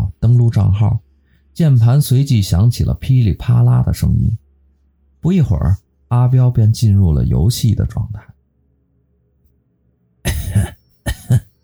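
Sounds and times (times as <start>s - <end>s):
speech: 0.5s - 4.4s, 5.2s - 8.3s, 10.5s - 11.4s
old man coughing: 10.3s - 11.6s.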